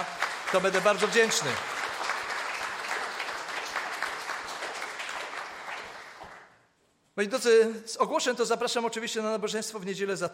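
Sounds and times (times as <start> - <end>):
speech: 0.0 - 1.8, 7.2 - 10.3
audience applause: 0.0 - 6.5.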